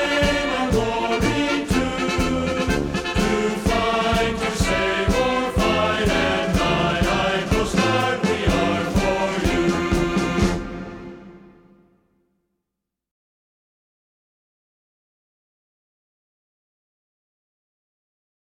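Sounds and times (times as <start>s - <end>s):
person singing: 0.0s - 10.6s.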